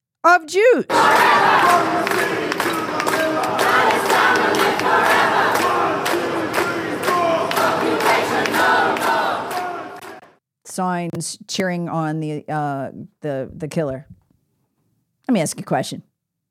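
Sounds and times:
speech: 0.2s - 2.8s, 10.8s - 14.2s, 15.3s - 16.1s
large outdoor crowd cheering and chanting: 0.9s - 10.3s
sharp claps or bangs: 0.9s - 10.3s.

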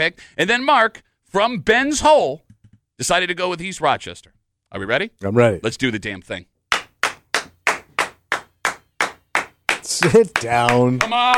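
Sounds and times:
speech: 0.0s - 2.4s, 3.0s - 6.5s, 9.9s - 11.3s
person clapping: 6.7s - 11.3s.

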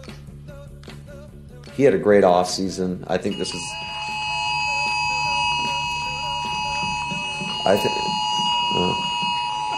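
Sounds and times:
speech: 1.8s - 4.0s, 7.7s - 7.9s
phone ringing during press conference: 3.3s - 9.7s.

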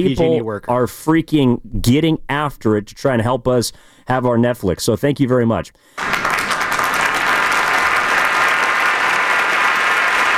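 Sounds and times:
speech: 0.0s - 6.3s
crowd applause: 6.0s - 10.3s.

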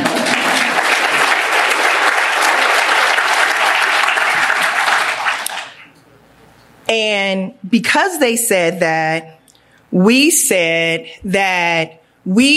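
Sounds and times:
crowd applauding: 0.0s - 5.9s
speech: 7.0s - 12.5s.

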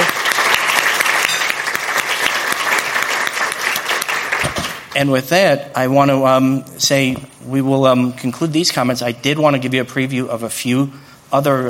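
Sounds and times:
crowd applauding: 0.0s - 4.9s
speech: 5.0s - 11.6s.

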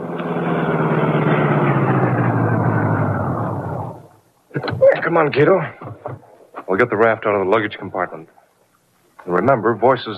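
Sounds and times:
car engine rumbling while driving slowly: 0.0s - 6.2s
speech: 5.2s - 5.8s, 6.7s - 8.4s, 9.2s - 10.1s.

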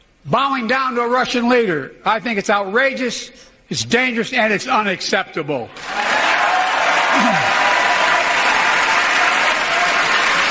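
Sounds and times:
speech: 0.2s - 6.2s, 7.2s - 7.5s
large audience applause: 5.8s - 10.4s.

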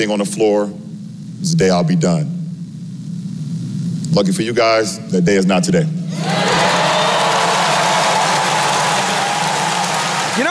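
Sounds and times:
speech: 0.0s - 0.8s, 1.4s - 2.4s, 4.1s - 6.5s
crowd applause and cheering: 6.1s - 10.4s.

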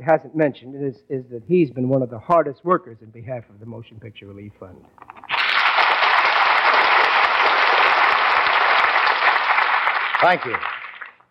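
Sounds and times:
speech: 0.0s - 5.2s, 10.2s - 10.7s
studio audience applause: 5.3s - 11.2s.

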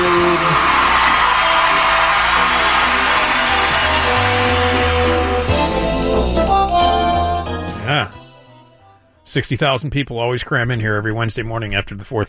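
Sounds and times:
crowd cheering and whooping intro sound effect: 0.0s - 6.1s
thumping musical backing: 0.0s - 8.7s
speech: 9.3s - 12.2s.

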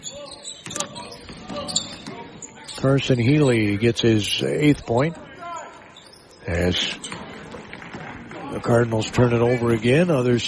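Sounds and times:
crowd noise: 0.0s - 10.4s
speech: 2.8s - 5.2s, 6.5s - 7.1s, 8.6s - 10.4s
basketball dribbled on the court during a boys' high school game: 7.0s - 8.5s.

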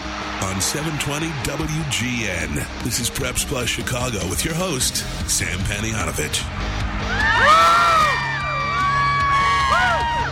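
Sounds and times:
live crowd cheering: 0.0s - 4.2s, 6.5s - 10.3s
speech: 0.4s - 7.6s.

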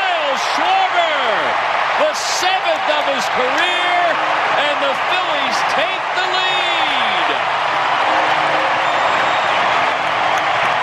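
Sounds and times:
baseball stadium crowd cheering: 0.0s - 10.8s
speech: 2.4s - 3.9s.

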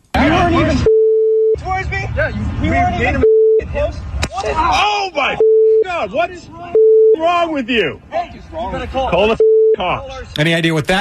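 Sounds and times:
censor beeps: 0.8s - 1.6s, 3.2s - 3.7s, 5.4s - 5.9s, 6.7s - 7.2s, 9.4s - 9.8s
speech: 2.2s - 3.2s, 4.4s - 10.9s.

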